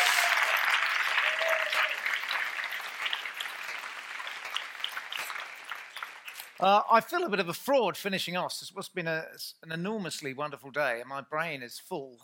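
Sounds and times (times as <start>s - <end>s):
audience applause: 0.0s - 6.6s
speech: 6.6s - 12.2s.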